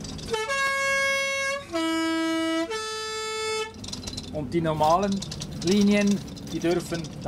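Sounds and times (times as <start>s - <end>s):
Swiss postbus horn: 0.2s - 3.8s
speech: 4.4s - 7.2s.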